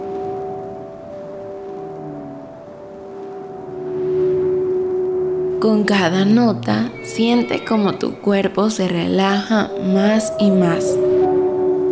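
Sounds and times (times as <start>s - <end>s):
humpback whale song: 0.0s - 11.9s
speech: 5.6s - 11.2s.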